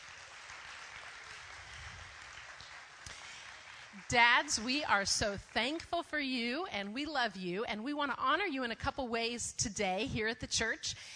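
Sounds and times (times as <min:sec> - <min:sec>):
audience applause: 0:00.0 - 0:05.5
speech: 0:04.0 - 0:11.1.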